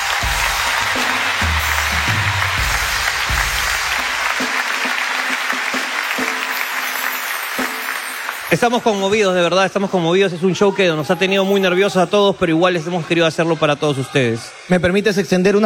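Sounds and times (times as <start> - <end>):
audience applause: 0.0 - 9.4
speech: 8.5 - 15.6.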